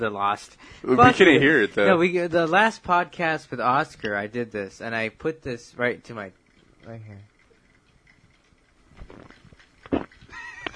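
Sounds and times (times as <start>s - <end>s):
speech: 0.0s - 7.3s
person gulping a sip of beer: 9.0s - 10.7s.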